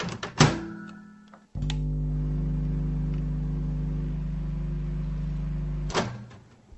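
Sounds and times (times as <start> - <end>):
microwave running: 1.6 - 6.2.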